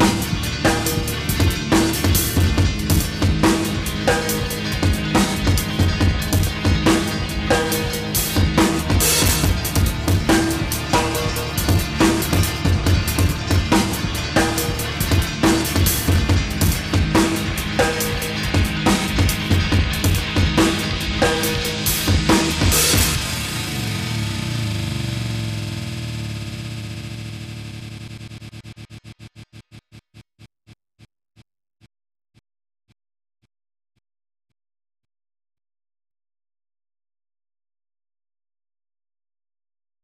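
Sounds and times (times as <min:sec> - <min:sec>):
funk music: 0:00.0 - 0:25.9.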